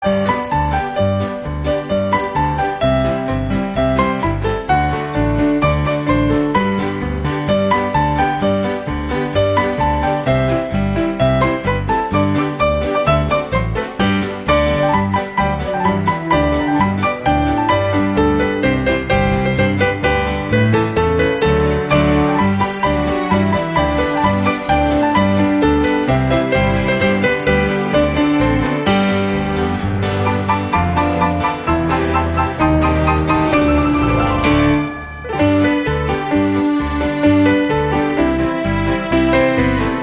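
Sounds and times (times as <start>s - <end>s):
Christmas song: 0.0s - 40.0s.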